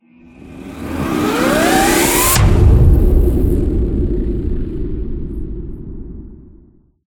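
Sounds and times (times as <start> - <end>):
transition sound: 0.1 - 5.6.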